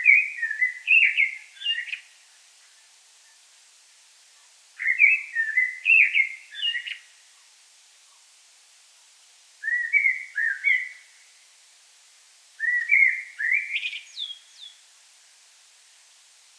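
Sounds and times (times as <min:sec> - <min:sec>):
common blackbird mellow whistled phrases: 0:00.0 - 0:02.0, 0:04.8 - 0:07.0, 0:09.6 - 0:11.0, 0:12.6 - 0:14.8.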